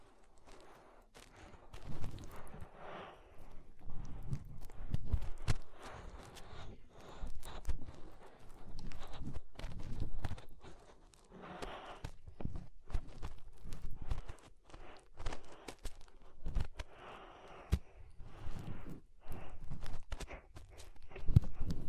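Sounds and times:
fingers rubbing and cleaning inside the ear: 0.0 - 21.8.

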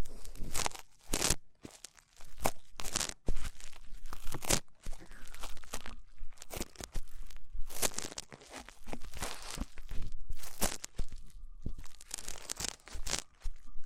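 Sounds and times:
rough ear cleaning scratching and rubbing: 0.0 - 13.8
faint whistling tone: 9.0 - 13.8.

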